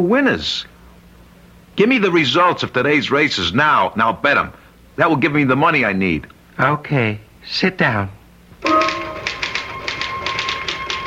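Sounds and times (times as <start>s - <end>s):
speech: 0.0s - 0.7s, 1.8s - 8.8s
rapid typing on a typewriter-style keyboard: 8.7s - 11.0s.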